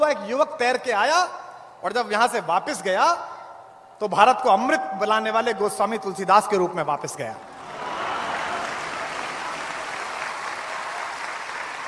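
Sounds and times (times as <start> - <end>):
speech: 0.0 - 3.3, 4.0 - 7.5
audience applause: 7.5 - 11.8.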